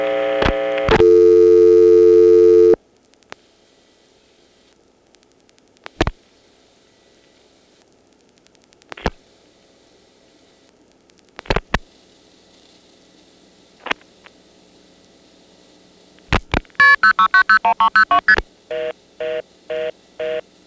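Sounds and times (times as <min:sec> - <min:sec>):
steady telephone exchange tone: 0:00.0 - 0:02.8, 0:16.8 - 0:20.6
short regular beeping tones: 0:16.8 - 0:18.4.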